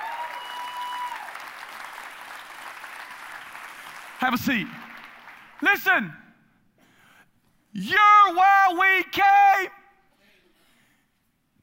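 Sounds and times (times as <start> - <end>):
church congregation applauding during a service: 0.0 - 6.1
speech: 4.2 - 4.8, 5.6 - 6.2, 7.8 - 9.8.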